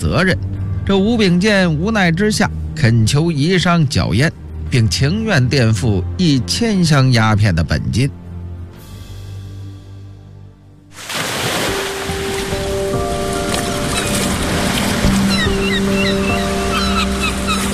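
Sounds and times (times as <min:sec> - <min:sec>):
speech: 0:00.0 - 0:08.2
ocean waves: 0:10.9 - 0:17.7.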